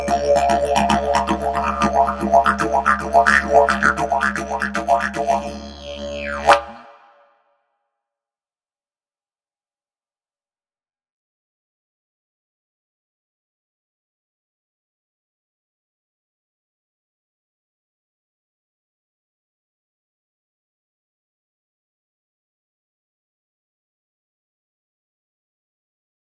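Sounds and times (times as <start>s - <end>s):
didgeridoo: 0.0s - 7.1s.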